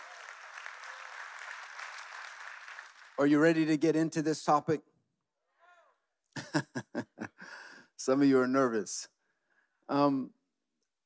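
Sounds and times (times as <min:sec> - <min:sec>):
audience clapping: 0:00.0 - 0:03.8
speech: 0:03.2 - 0:04.9, 0:08.0 - 0:09.2, 0:09.9 - 0:10.4
laughter: 0:06.4 - 0:07.8.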